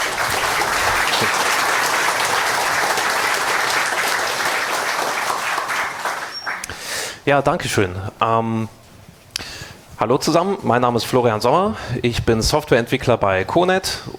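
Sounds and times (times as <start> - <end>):
audience applause: 0.0 - 6.7
speech: 1.2 - 1.4, 7.3 - 8.8, 10.0 - 14.1.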